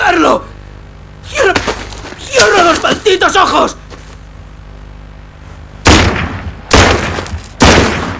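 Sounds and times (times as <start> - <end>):
speech: 2.4 - 3.8
gunshot fired at the ground: 5.8 - 8.1.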